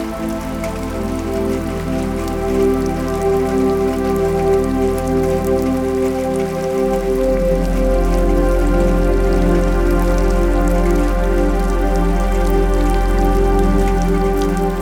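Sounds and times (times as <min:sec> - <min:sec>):
rain: 0:00.0 - 0:14.7.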